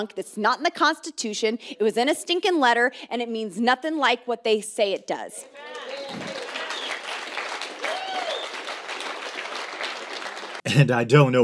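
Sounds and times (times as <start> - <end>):
speech: 0.0 - 6.3, 10.7 - 11.4
audience applause: 5.6 - 10.8.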